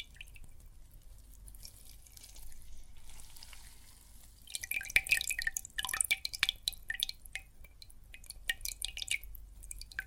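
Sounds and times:
water and soap foam crackling and fizzing: 0.0 - 4.6
dripping: 0.0 - 10.0.

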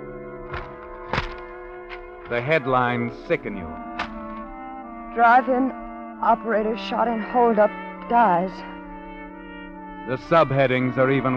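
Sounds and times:
low humming drone: 0.0 - 11.3
newspaper shoved under apartment door: 0.5 - 2.1, 3.9 - 4.4
speech: 2.3 - 3.9, 5.2 - 8.7, 10.1 - 11.3.

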